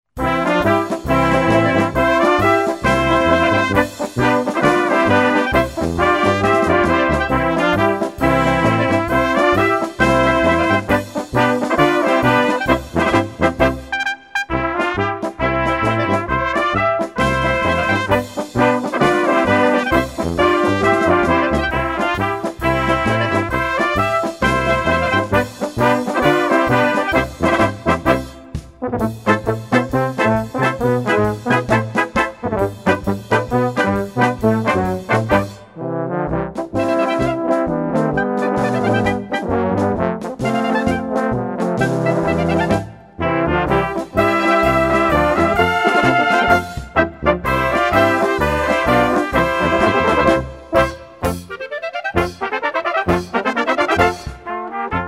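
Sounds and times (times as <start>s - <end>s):
polka music: 0.2s - 55.0s.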